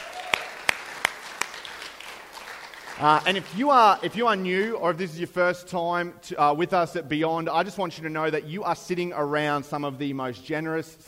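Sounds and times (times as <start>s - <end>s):
audience applause: 0.0s - 4.1s
speech: 3.0s - 11.0s.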